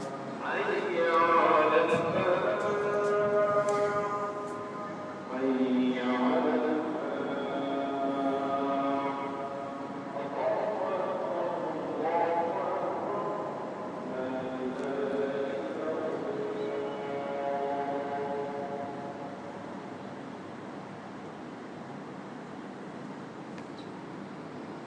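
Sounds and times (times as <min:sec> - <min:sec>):
call to prayer in Dubai: 0:00.0 - 0:19.8.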